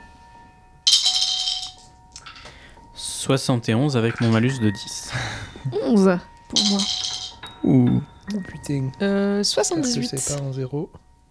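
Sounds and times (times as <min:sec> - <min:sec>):
dice being rolled: 0:00.9 - 0:02.5, 0:06.6 - 0:07.4
speech: 0:03.2 - 0:07.0, 0:07.6 - 0:11.1.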